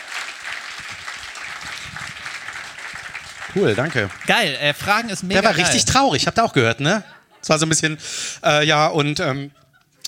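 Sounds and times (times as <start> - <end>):
audience applause: 0.0 - 5.9
speech: 3.6 - 9.6.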